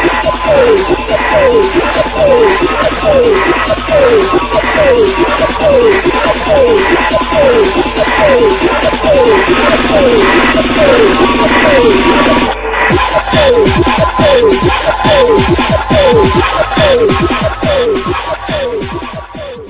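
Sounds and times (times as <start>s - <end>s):
dj sample: 0.0s - 19.6s.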